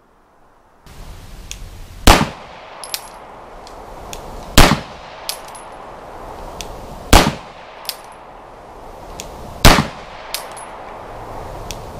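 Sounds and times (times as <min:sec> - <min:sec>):
gunshot: 0:02.1 - 0:02.8, 0:04.6 - 0:05.3, 0:07.1 - 0:07.6, 0:09.6 - 0:10.4.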